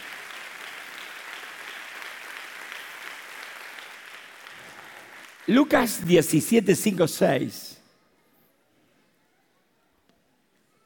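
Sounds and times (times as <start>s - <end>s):
audience clapping: 0.0s - 7.5s
speech: 5.5s - 7.7s.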